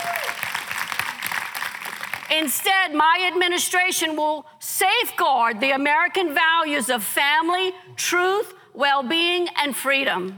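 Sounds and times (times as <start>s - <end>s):
audience applause during a political speech: 0.0s - 2.3s
speech: 2.3s - 10.3s.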